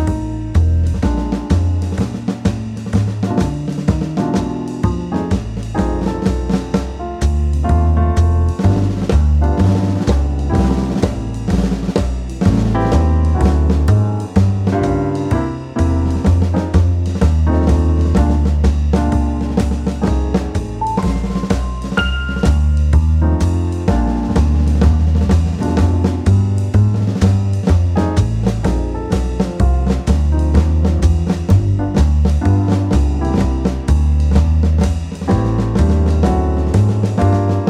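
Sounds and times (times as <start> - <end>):
blues music: 0.0 - 37.6
snare drum: 0.0 - 37.6.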